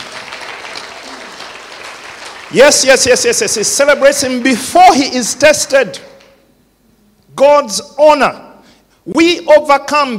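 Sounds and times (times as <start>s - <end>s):
audience applause: 0.0s - 3.4s
speech: 2.5s - 6.1s, 7.4s - 8.5s, 9.1s - 10.1s.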